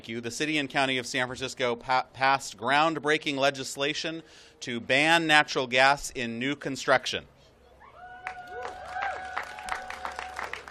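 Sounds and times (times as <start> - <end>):
speech: 0.0 - 7.3
audience applause: 8.2 - 10.6.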